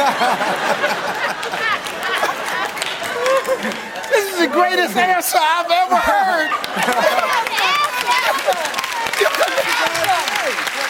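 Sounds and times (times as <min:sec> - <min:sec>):
crowd cheering: 0:00.0 - 0:10.8
laughter: 0:00.0 - 0:10.8
speech: 0:04.8 - 0:07.3.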